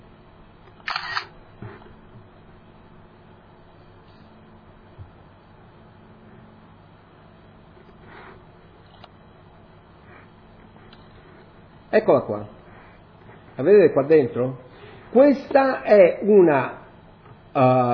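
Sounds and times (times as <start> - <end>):
camera shutter sound of a screenshot on a computer: 0.8 - 1.3
speech: 12.0 - 12.6, 13.6 - 16.8, 17.6 - 17.9.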